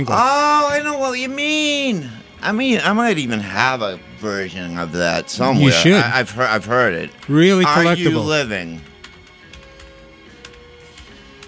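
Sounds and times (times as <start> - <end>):
speech: 0.0 - 8.9
typing on a keyboard: 8.8 - 11.4.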